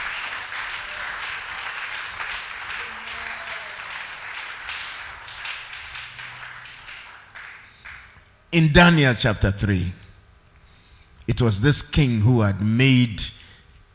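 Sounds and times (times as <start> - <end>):
audience clapping: 0.0 - 8.3
speech: 8.6 - 10.0, 11.3 - 13.4.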